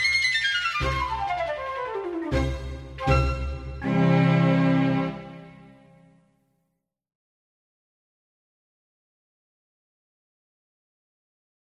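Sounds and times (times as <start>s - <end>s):
easy listening and classical music: 0.0s - 6.2s.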